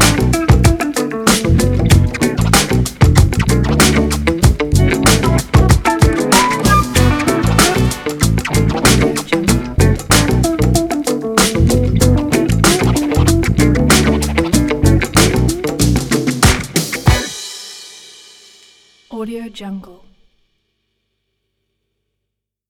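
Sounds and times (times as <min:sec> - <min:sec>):
funk music: 0:00.0 - 0:17.8.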